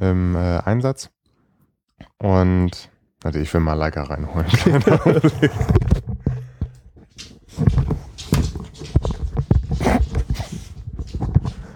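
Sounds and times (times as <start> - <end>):
speech: 0.0 - 1.2, 2.2 - 5.8
laughter: 4.4 - 6.0
dog waking up and moving around: 4.4 - 11.7
dog panting: 9.0 - 11.7.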